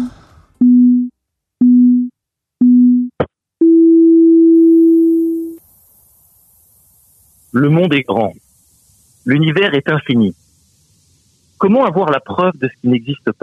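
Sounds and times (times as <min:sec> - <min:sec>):
short low electronic beeps: 0:00.0 - 0:05.6
speech: 0:07.6 - 0:08.4, 0:09.2 - 0:10.4, 0:11.6 - 0:13.4.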